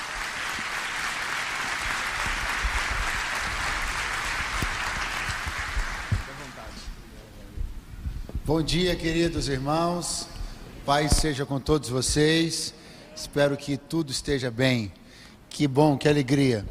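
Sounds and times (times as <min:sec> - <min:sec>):
round of applause for a speaker: 0:00.0 - 0:06.6
speech: 0:08.5 - 0:10.3, 0:10.9 - 0:16.6.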